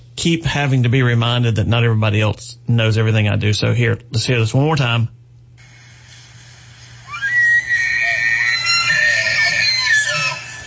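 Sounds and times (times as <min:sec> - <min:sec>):
speech: 0:00.2 - 0:05.2
bull elk bugling during the rut: 0:07.0 - 0:10.6.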